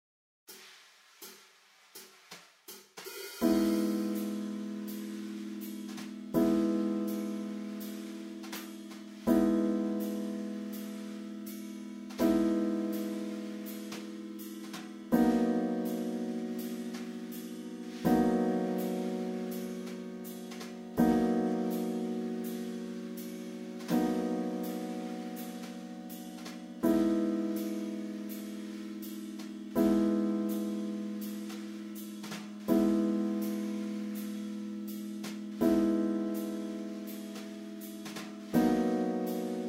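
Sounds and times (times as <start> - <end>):
black-key accompaniment pattern: 3.3 - 39.6.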